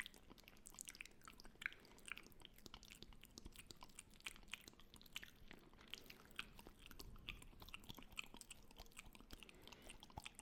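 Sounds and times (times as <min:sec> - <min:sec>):
wet mouth sounds: 0:00.0 - 0:10.4.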